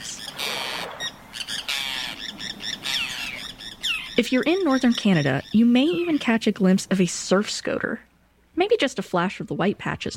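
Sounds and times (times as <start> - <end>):
Forster's tern giving harsh grating squawks: 0.0 - 6.4
speech: 4.2 - 10.1.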